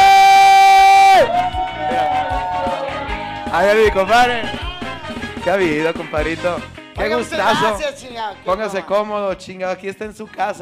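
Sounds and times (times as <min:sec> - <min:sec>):
audience cheering: 0:00.0 - 0:05.4
audience applause: 0:01.2 - 0:04.7
speech: 0:03.6 - 0:04.6, 0:05.4 - 0:10.6.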